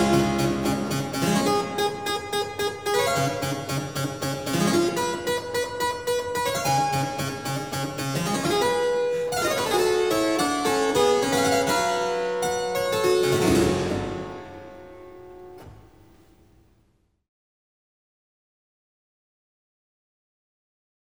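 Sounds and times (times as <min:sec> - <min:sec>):
harpsichord: 0:00.0 - 0:16.1.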